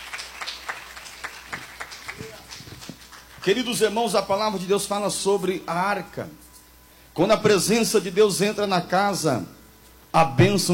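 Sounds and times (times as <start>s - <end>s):
audience clapping in rhythm: 0.0s - 3.9s
speech: 3.4s - 6.4s, 7.2s - 10.7s.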